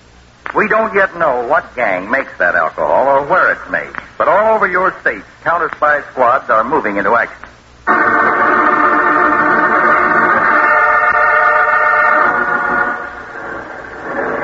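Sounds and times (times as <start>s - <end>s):
speech: 0.6s - 8.3s
truck engine roaring: 7.9s - 14.4s.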